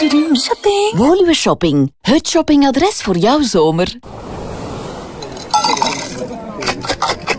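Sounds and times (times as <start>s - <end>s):
speech: 0.0s - 4.4s, 5.6s - 6.3s
glasses clinking in a toast with mocktails: 5.2s - 7.2s.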